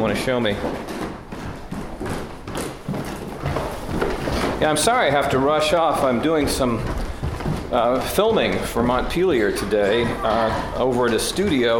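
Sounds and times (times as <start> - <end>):
speech: 0.0 - 1.0, 4.6 - 7.0, 7.7 - 11.7
footsteps walking down the stairs to a basement: 0.0 - 11.7.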